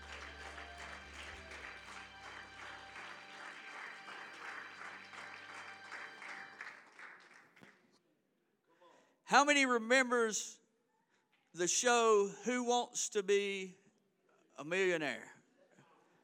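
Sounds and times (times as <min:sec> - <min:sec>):
audience hand clap: 0:00.0 - 0:07.9
speech: 0:09.3 - 0:10.6, 0:11.6 - 0:13.8, 0:14.6 - 0:15.4.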